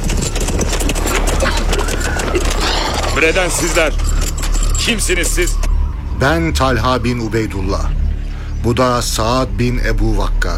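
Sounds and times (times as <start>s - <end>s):
galloping horses as horsemen arrive: 0.0s - 5.6s
speech: 3.2s - 4.1s, 4.8s - 5.6s, 6.2s - 8.0s, 8.6s - 10.5s.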